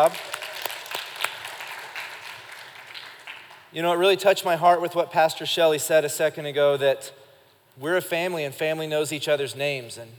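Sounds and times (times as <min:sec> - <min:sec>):
speech: 0:00.0 - 0:00.4, 0:03.7 - 0:07.2, 0:07.8 - 0:10.1
audience applause: 0:00.0 - 0:03.6.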